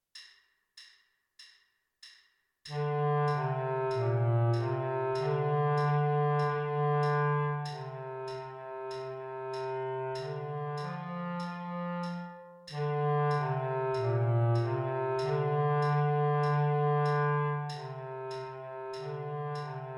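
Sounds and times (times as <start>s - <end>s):
bass clarinet: 2.7s - 19.9s.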